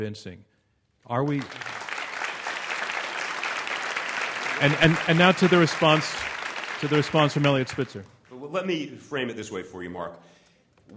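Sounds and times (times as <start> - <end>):
speech: 0.0 - 1.7, 4.6 - 10.9
audience applause: 1.3 - 8.1.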